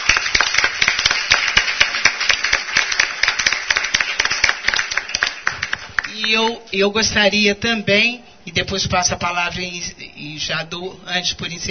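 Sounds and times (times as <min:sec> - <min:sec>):
audience applause: 0:00.0 - 0:06.1
speech: 0:06.3 - 0:11.6.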